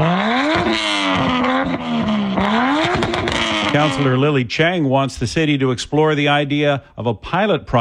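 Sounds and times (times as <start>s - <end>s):
car with noisy modified exhaust revving: 0.0s - 5.7s
speech: 3.8s - 7.7s.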